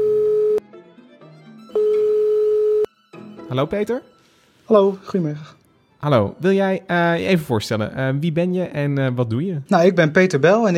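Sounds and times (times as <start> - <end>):
telephone ringing tone: 0.0 - 0.6, 1.7 - 2.9
faint music: 0.6 - 10.7
speech: 3.5 - 10.7.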